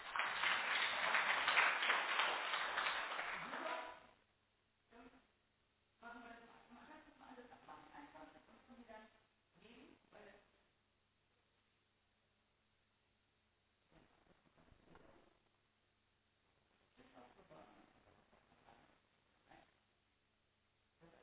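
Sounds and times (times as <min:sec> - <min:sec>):
crowd applauding: 0:00.0 - 0:04.0.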